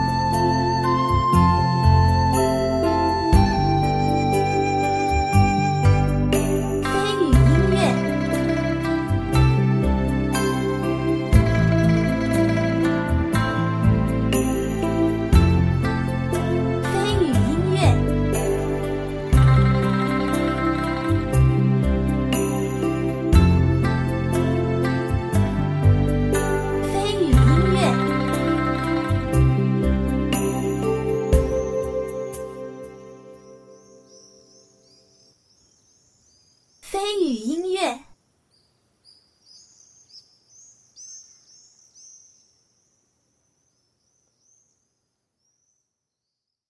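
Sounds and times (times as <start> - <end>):
background music: 0.0 - 34.8.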